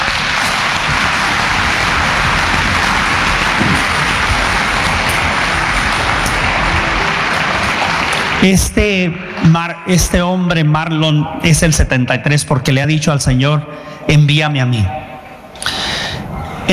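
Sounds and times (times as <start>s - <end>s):
audience applause: 0.0s - 9.7s
speech: 8.4s - 15.8s.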